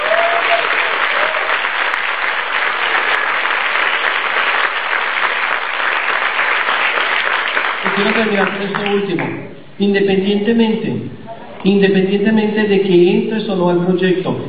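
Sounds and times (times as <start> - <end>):
audience applause for the guests: 0.0 - 9.4
speech: 8.1 - 14.4.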